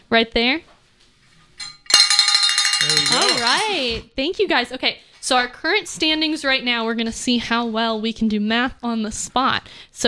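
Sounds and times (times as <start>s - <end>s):
speech: 0.1s - 0.7s, 2.8s - 10.0s
yellow bell ringing: 1.6s - 4.0s.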